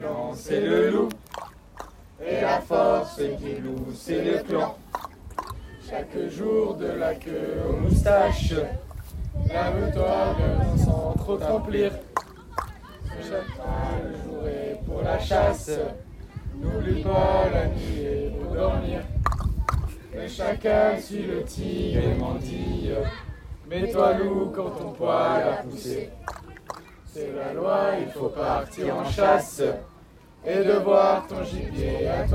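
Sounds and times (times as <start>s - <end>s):
scout song: 0.0s - 32.3s.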